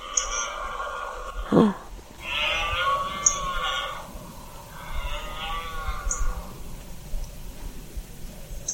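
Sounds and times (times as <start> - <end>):
red deer stag bellowing during rut: 0.0 - 6.9
speech: 1.5 - 1.8.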